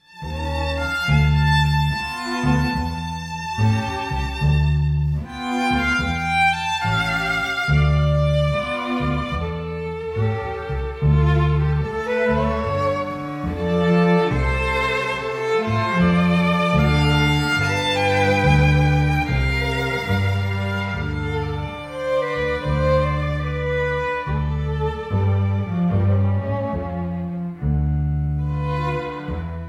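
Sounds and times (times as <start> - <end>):
string quartet: 0.0 - 29.6.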